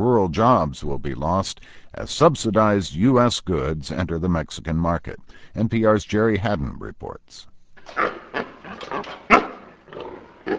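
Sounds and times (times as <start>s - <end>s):
speech: 0.0s - 8.2s
pigs squealing in holding pen: 7.8s - 10.5s.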